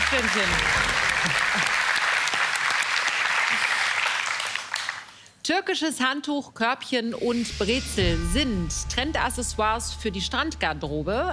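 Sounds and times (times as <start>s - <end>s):
audience applause: 0.0s - 5.2s
speech: 0.2s - 1.8s, 5.5s - 11.3s.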